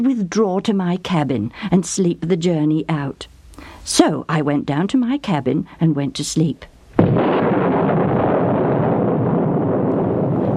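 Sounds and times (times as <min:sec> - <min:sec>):
speech: 0:00.0 - 0:07.2
thunder crash: 0:07.0 - 0:10.5.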